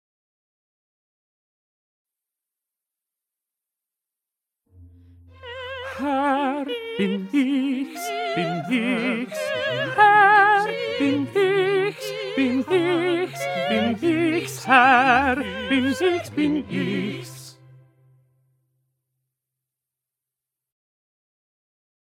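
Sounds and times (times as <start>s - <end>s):
tenor singing: 5.3s - 17.7s.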